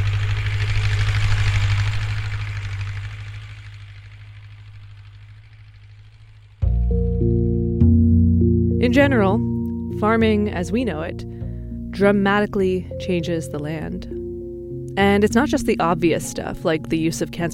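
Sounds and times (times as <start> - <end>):
tractor engine droning: 0.0 - 17.5
music: 6.6 - 17.5
speech: 8.8 - 11.3, 12.0 - 14.2, 15.0 - 17.5.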